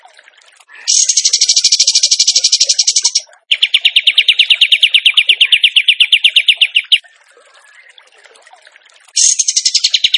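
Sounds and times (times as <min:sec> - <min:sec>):
bird trilling: 0:00.8 - 0:07.0, 0:09.2 - 0:10.1.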